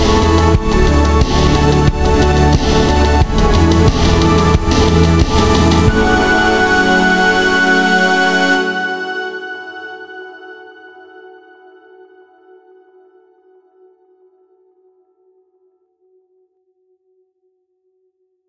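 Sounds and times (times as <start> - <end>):
synthwave music: 0.0 - 11.2.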